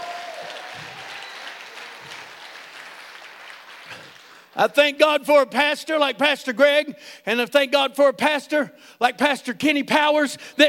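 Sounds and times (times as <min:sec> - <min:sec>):
audience clapping hands: 0:00.0 - 0:04.6
speech: 0:04.6 - 0:10.6.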